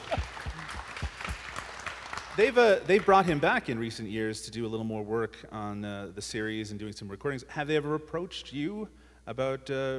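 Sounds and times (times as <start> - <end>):
audience cheering: 0.0 - 2.5
audience applause: 0.0 - 3.1
speech: 2.4 - 9.9.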